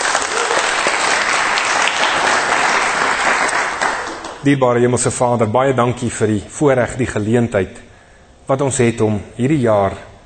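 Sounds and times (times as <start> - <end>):
audience applause: 0.0 - 4.4
speech: 4.4 - 7.9, 8.5 - 10.1.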